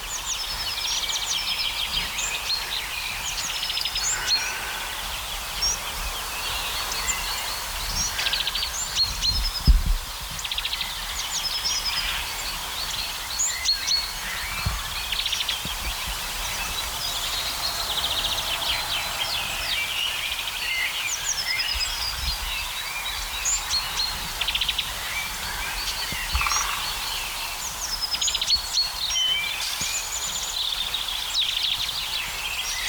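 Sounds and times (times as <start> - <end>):
busy chorus of other birds: 0.0 - 32.8
great tit singing: 0.1 - 9.6, 10.4 - 32.8
low rumble of noise: 15.9 - 21.2.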